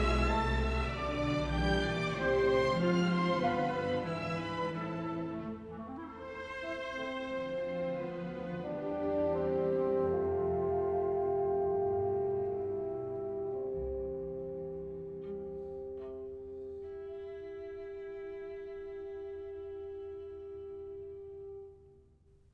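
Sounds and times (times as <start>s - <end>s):
andantino music piece: 0.0s - 22.2s.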